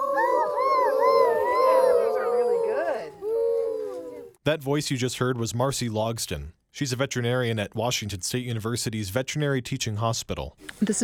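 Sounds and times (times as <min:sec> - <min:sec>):
children imitating owl hoots: 0:00.0 - 0:04.4
speech: 0:04.5 - 0:11.0.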